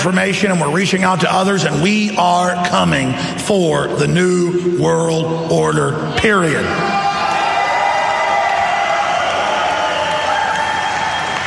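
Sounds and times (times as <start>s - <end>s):
speech: 0.0s - 7.0s
auditorium crowd cheering: 6.3s - 11.4s.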